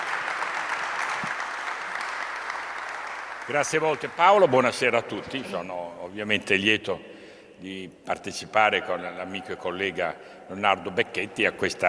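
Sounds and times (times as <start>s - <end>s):
audience applause: 0.0s - 5.4s
speech: 3.5s - 11.8s.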